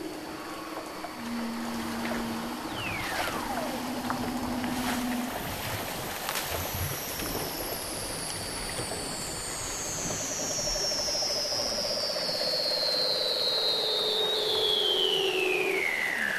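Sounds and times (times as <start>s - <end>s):
short low hum: 0.0s - 11.9s
Weddell seal whistle: 0.0s - 16.3s
low pulsed trill: 0.0s - 16.3s.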